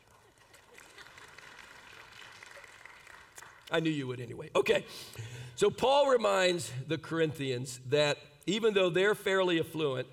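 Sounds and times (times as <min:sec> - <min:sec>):
audience clapping: 0:00.0 - 0:04.0
speech: 0:03.7 - 0:10.1.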